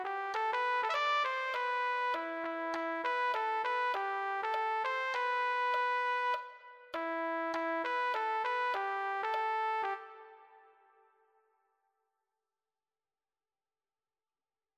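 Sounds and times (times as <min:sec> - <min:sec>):
trumpet: 0:00.0 - 0:11.0.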